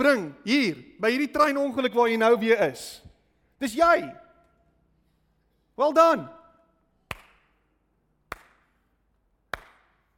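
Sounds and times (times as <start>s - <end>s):
speech: 0.0s - 4.2s, 5.8s - 6.4s
slow clap: 7.0s - 10.1s.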